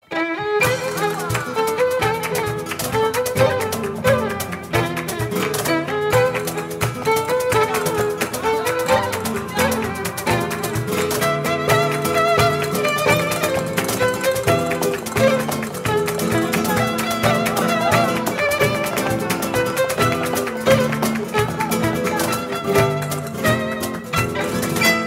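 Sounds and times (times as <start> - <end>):
flamenco violin: 0.0 - 25.0.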